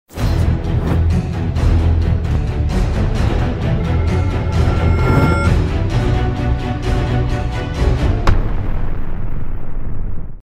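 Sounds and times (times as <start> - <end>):
cinematic music: 0.2 - 9.0.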